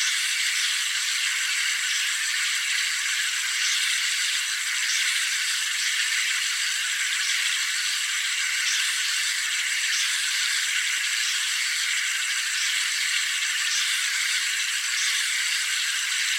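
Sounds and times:
insects chirping in a jungle by day: 0:00.1 - 0:16.3.

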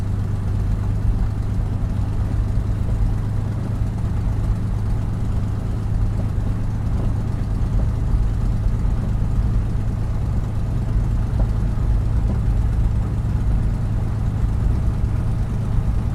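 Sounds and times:
CAC CA-18 Mustang Mk23 aircraft approach and landing heard from interior: 0:00.0 - 0:16.1.

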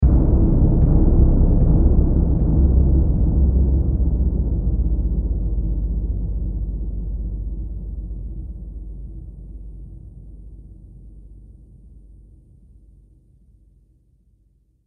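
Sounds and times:
trailer drum hit: 0:00.0 - 0:09.2.

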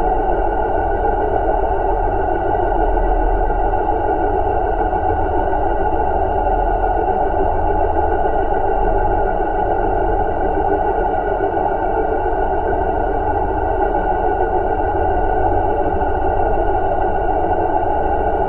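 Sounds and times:
sci-fi alien power source drone: 0:00.0 - 0:18.4.

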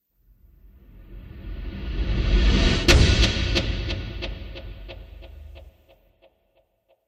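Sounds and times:
movie trailer whoosh: 0:00.4 - 0:05.7
movie trailer impact with delay: 0:02.3 - 0:05.7.

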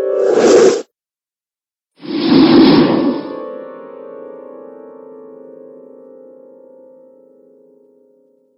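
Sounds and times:
horror trailer whooshes: 0:00.1 - 0:00.9, 0:02.0 - 0:03.5.

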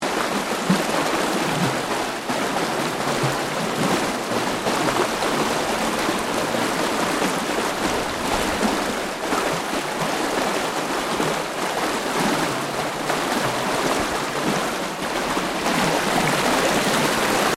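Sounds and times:
water stream gurgling: 0:00.0 - 0:17.5.

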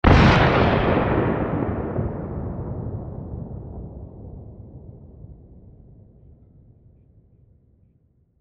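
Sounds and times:
military explosion blast: 0:00.0 - 0:06.2.

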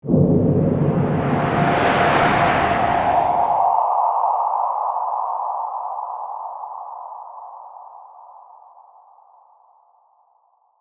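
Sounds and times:
ghostly ethereal swirl: 0:00.0 - 0:06.4.

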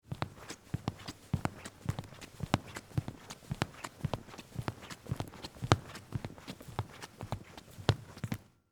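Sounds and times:
footsteps walking across a wooden theatre stage floor: 0:00.1 - 0:08.4.

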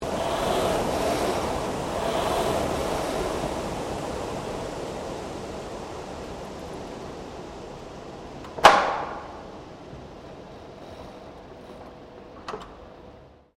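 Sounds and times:
gym rowing machine stopping: 0:00.0 - 0:07.8.

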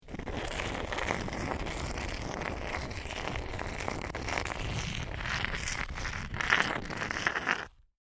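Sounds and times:
stone grinding and scraping along a stone pillar: 0:00.0 - 0:07.8.

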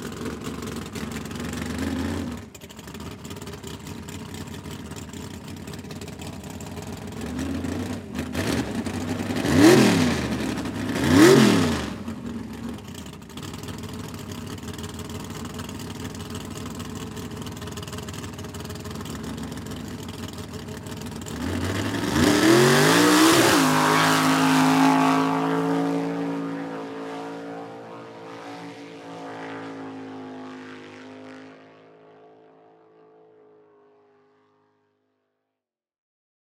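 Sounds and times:
swamp buggy idling, revving and driving away: 0:00.0 - 0:28.4.

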